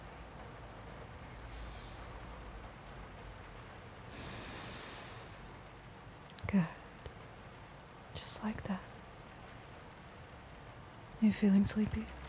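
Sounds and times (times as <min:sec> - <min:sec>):
faint steady hiss: 0:00.0 - 0:12.2
slow deep breathing: 0:00.9 - 0:03.0, 0:04.0 - 0:05.7
speech: 0:06.5 - 0:06.8, 0:08.4 - 0:08.9, 0:11.2 - 0:12.2.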